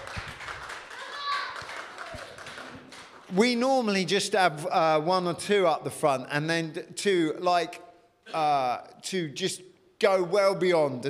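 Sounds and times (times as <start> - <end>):
audience applause: 0.0 - 3.3
speech: 3.3 - 11.0.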